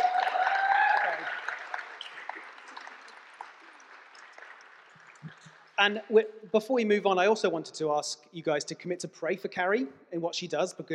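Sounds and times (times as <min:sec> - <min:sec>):
high whoop: 0:00.0 - 0:01.5
audience applause: 0:00.0 - 0:05.7
speech: 0:05.8 - 0:10.9.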